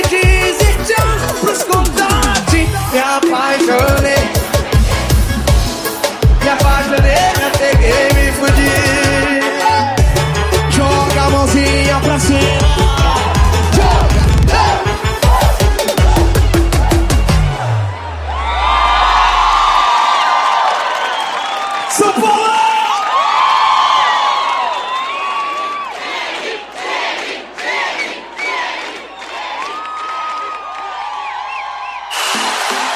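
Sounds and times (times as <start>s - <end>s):
rhythmic beats: 0.0s - 17.8s
football supporters cheering and chanting: 0.0s - 32.9s.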